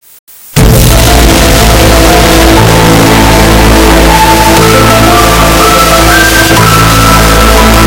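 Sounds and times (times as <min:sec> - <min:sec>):
soothing music: 0:00.6 - 0:07.8.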